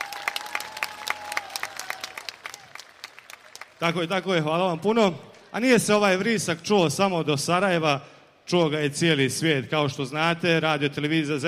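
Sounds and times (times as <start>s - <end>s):
audience clapping at the Zenica Summer Fest outdoor show: 0.0s - 5.5s
speech: 3.8s - 11.4s.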